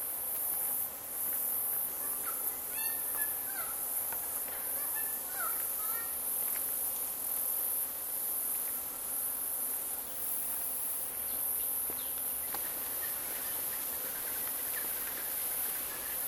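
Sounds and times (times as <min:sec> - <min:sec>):
insects in a national park forest in Noosa on the Sunshine Coast: 0:00.0 - 0:16.2
forest birds in a national park in Noosa on the Sunshine Coast: 0:01.7 - 0:06.2, 0:11.3 - 0:16.2.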